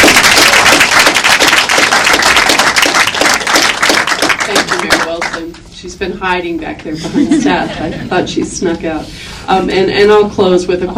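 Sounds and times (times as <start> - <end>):
applause: 0.0 - 5.6
speech: 6.0 - 10.9.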